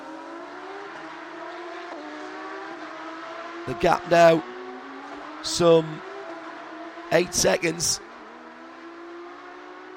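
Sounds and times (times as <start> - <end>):
Jebsen Porsche race car engine on the back straight: 0.0 - 9.9
speech: 3.6 - 4.5, 5.4 - 6.1, 7.1 - 8.1.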